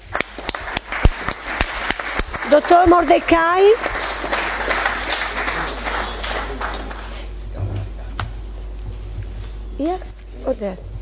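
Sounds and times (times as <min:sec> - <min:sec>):
audience applause: 0:00.0 - 0:07.3
speech: 0:02.5 - 0:04.0, 0:09.8 - 0:10.9.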